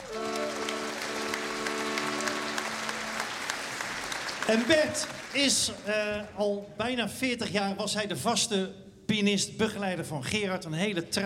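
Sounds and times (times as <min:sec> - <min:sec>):
audience applause: 0:00.0 - 0:06.2
speech: 0:04.5 - 0:11.2.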